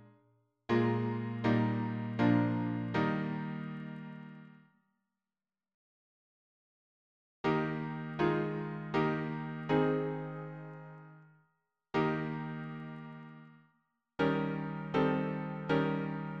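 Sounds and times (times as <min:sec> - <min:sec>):
piano harmony: 0:00.7 - 0:04.5, 0:07.5 - 0:11.1, 0:12.0 - 0:13.5, 0:14.2 - 0:16.3.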